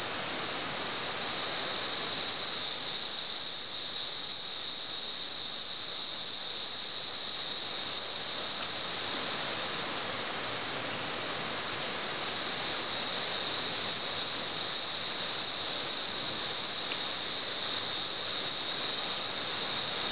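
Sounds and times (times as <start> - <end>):
cicada buzz: 0.0 - 20.1.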